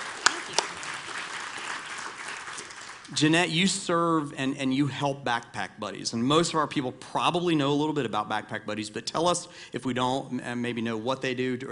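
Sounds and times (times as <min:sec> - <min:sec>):
round of applause: 0:00.0 - 0:03.2
speech: 0:03.1 - 0:11.6.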